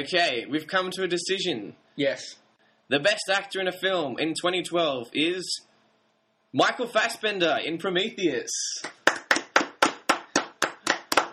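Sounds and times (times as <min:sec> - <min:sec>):
speech: 0:00.0 - 0:05.7, 0:06.5 - 0:09.3
sparse handclaps: 0:08.8 - 0:11.3.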